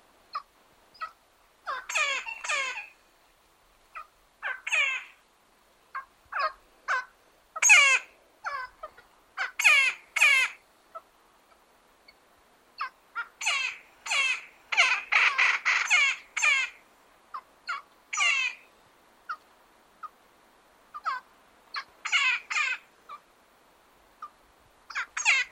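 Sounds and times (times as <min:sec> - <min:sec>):
woodpecker giving harsh squawking calls in Patagonia: 0:00.3 - 0:03.0, 0:03.9 - 0:05.2, 0:05.9 - 0:11.0, 0:12.8 - 0:18.7, 0:20.9 - 0:23.2, 0:24.2 - 0:25.5.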